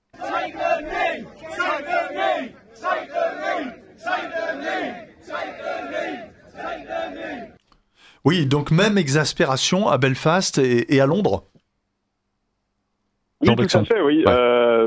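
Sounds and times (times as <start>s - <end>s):
anti-immigration protesters shouting: 0.1s - 7.6s
speech: 8.2s - 11.5s, 13.4s - 14.8s.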